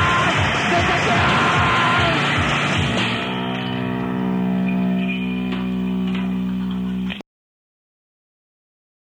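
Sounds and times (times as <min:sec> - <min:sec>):
chaotic disco music: 0:00.0 - 0:07.1.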